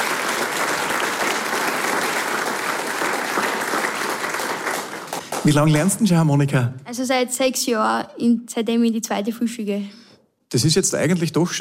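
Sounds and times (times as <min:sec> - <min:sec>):
audience applause: 0:00.0 - 0:06.0
speech: 0:05.4 - 0:11.5.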